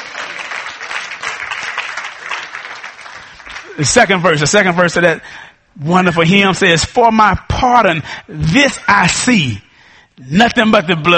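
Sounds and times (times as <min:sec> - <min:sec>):
crowd clapping hands in praise: 0:00.0 - 0:04.0
speech: 0:03.8 - 0:09.6, 0:10.2 - 0:11.1.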